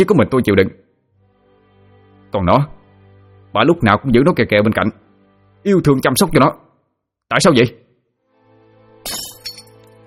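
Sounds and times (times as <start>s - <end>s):
speech: 0.0s - 0.8s, 2.3s - 2.8s, 3.5s - 5.0s, 5.6s - 6.6s, 7.3s - 7.8s, 9.0s - 9.3s
flower vase knocked off a table shattering: 9.0s - 9.9s
glass clink: 9.1s - 9.8s.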